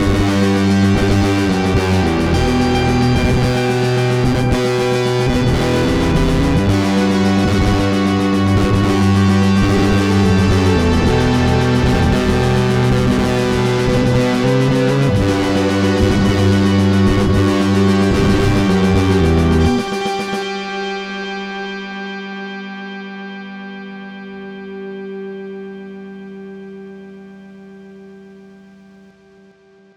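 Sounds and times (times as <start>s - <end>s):
winter drums: 0.0s - 21.2s.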